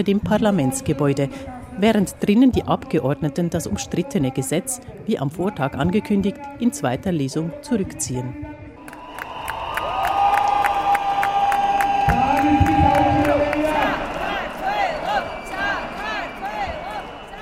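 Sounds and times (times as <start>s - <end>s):
speech: 0.0s - 8.6s
large crowd cheering euphorically: 8.8s - 17.4s
long shrill whistle blasts: 8.8s - 17.4s
shouted voices: 8.9s - 17.4s.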